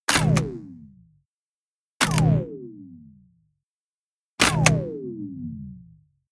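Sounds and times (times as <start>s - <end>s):
switch turning on and off: 0.1s - 0.6s, 2.0s - 2.4s, 4.4s - 4.8s.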